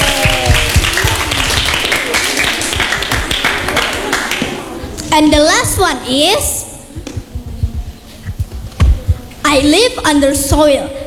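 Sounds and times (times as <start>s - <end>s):
voices cheering: 0.0s - 5.0s
group clapping: 0.0s - 5.1s
speech: 5.2s - 6.6s, 9.5s - 11.0s.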